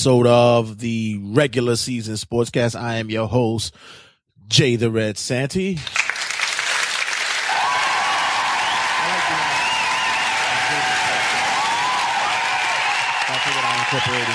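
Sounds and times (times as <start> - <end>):
speech: 0.0 - 6.1, 13.9 - 14.3
applause: 5.8 - 14.3.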